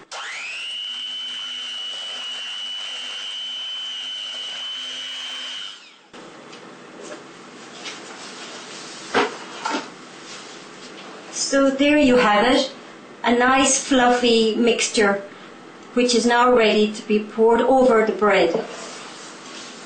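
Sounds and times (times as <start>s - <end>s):
electric whisk mixing batter: 0.0s - 6.2s
speech: 11.5s - 15.3s, 16.0s - 18.8s.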